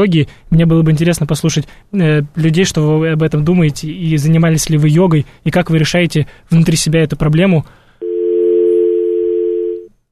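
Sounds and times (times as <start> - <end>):
speech: 0.0 - 7.8
telephone tone after a call dropped: 8.0 - 9.9.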